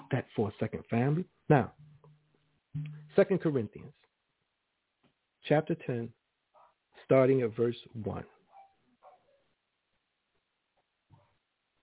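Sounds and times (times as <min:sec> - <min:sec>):
speech: 0:00.1 - 0:01.8, 0:02.8 - 0:04.0, 0:05.4 - 0:06.2, 0:07.1 - 0:08.4
dog barking: 0:08.5 - 0:09.4.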